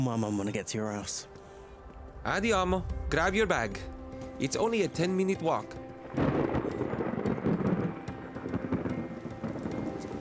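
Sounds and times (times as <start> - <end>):
speech: 0.0 - 1.4, 2.2 - 6.4
heavy rain pouring down: 1.6 - 10.1
low rumble of thunder: 1.8 - 4.9, 6.0 - 10.1.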